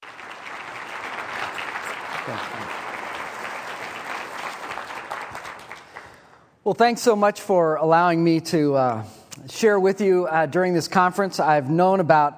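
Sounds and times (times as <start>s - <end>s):
conference audience applause welcoming a speaker: 0.0s - 6.5s
speech: 2.3s - 2.8s, 6.6s - 12.3s.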